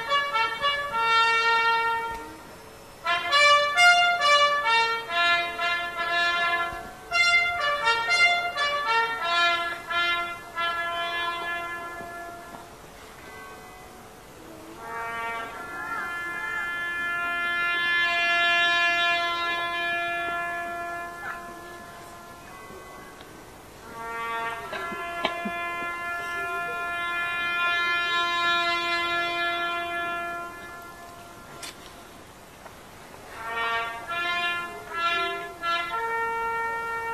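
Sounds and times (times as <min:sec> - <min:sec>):
bugle call in Winchcombe, Cotswolds UK: 0:00.0 - 0:32.1, 0:33.2 - 0:37.1.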